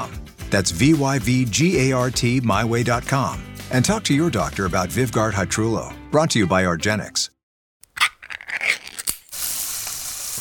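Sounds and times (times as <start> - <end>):
speech: 0.0 - 7.3
Spam sizzling in a pan: 9.1 - 10.3.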